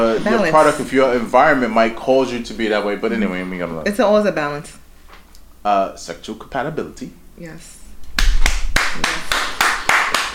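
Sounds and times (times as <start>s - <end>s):
speech: 0.1s - 4.8s, 5.6s - 7.8s, 8.9s - 9.4s
applause: 8.2s - 10.3s.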